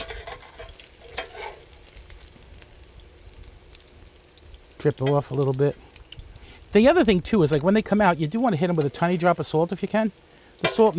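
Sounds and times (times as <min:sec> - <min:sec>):
scraping stir: 0:00.0 - 0:01.7
food frying in olive oil: 0:00.0 - 0:10.9
speech: 0:04.8 - 0:05.9, 0:06.7 - 0:10.9.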